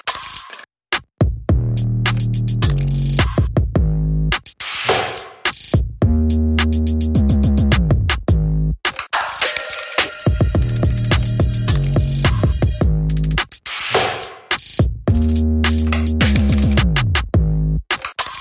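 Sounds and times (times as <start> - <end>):
drums: 0.0 - 18.3
bass: 1.2 - 4.4, 5.8 - 8.9, 10.3 - 13.5, 14.8 - 17.9.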